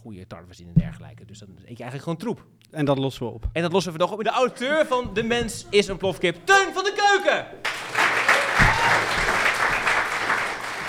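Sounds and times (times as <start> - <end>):
speech: 0.0 - 7.7
audience applause: 6.6 - 10.8.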